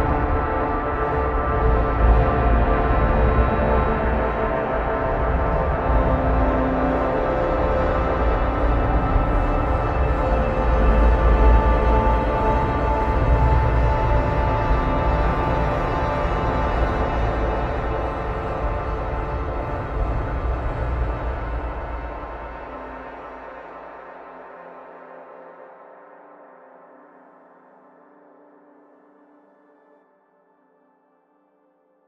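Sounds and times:
drone: 0.0s - 25.3s.

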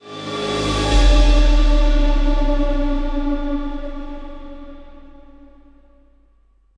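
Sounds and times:
death musical sting: 0.2s - 6.3s.

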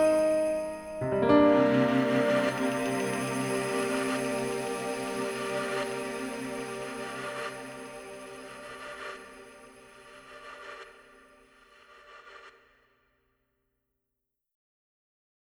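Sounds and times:
piano music: 0.0s - 10.0s.

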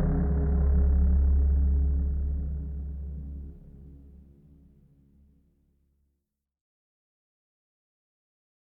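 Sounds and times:
ambience: 0.0s - 4.6s.

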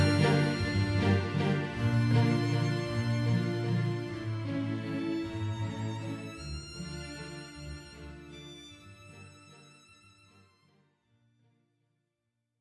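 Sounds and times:
emotional music: 0.0s - 9.9s.

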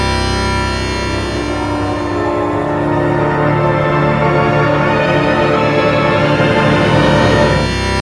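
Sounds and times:
evil chords: 0.0s - 8.0s.

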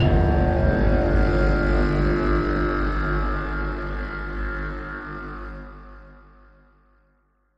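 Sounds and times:
battle outro music stinger: 0.0s - 4.8s.

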